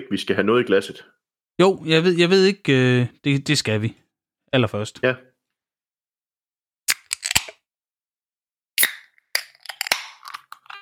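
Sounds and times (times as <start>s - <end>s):
speech: 0.0s - 5.3s
drink can being opened: 6.9s - 7.6s, 8.8s - 10.8s.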